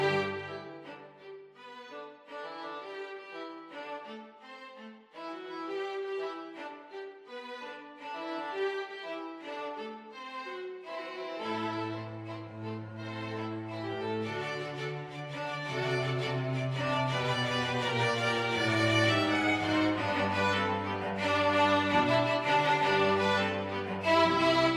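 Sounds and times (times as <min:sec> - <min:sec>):
string quartet playing salsa: 0:00.0 - 0:04.1, 0:04.8 - 0:24.7.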